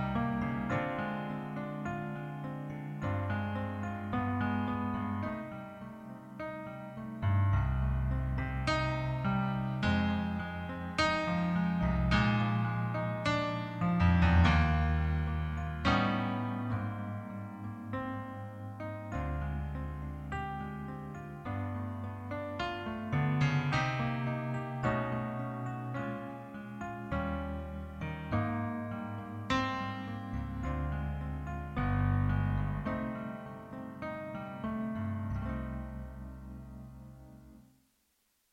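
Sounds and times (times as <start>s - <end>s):
instrumental ballad: 0.0s - 37.6s.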